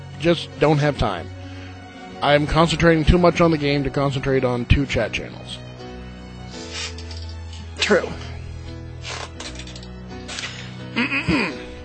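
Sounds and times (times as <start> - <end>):
speech: 0.2 - 1.4, 2.2 - 5.6, 7.9 - 8.3, 11.0 - 11.6
throat clearing: 11.0 - 11.7.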